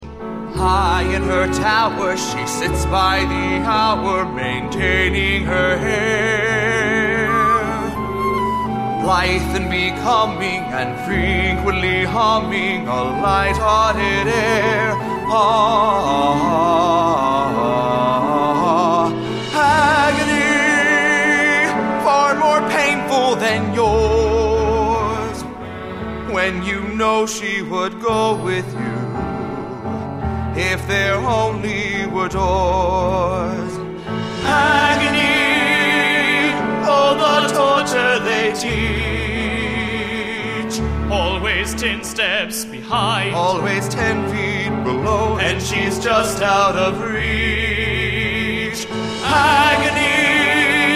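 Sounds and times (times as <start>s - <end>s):
song with vocals: 0.0s - 50.9s.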